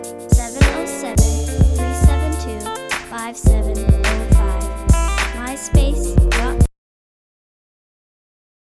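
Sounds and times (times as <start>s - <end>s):
beats: 0.0s - 6.7s
guitar: 0.0s - 6.7s.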